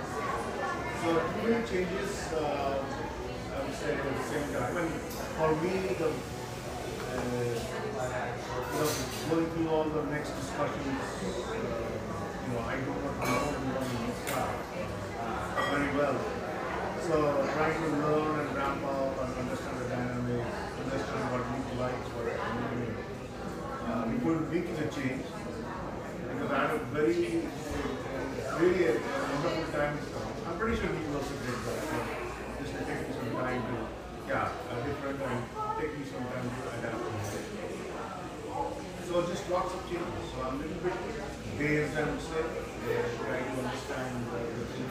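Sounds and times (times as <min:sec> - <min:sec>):
hum of a neighborhood espresso shop in Portland, Oregon: 0:00.0 - 0:44.8.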